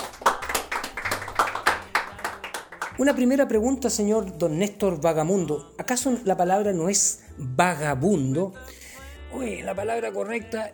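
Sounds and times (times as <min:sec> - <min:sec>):
applause: 0:00.0 - 0:03.3
speech: 0:03.0 - 0:10.7.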